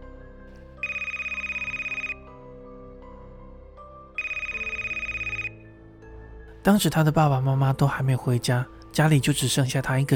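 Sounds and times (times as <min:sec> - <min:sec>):
telephone ringing: 0:00.8 - 0:02.2, 0:04.2 - 0:05.7
speech: 0:06.6 - 0:10.1.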